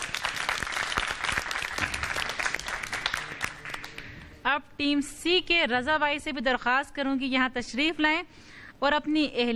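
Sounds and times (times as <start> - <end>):
loud applause: 0.0 - 4.1
speech: 4.5 - 9.5.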